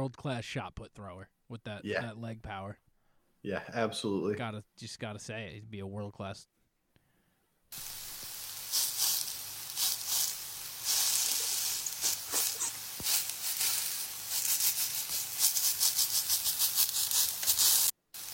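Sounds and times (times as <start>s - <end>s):
speech: 0.0s - 2.8s, 3.4s - 6.6s
pepperoni and Little Smokies sizzling while cooking: 7.7s - 18.3s.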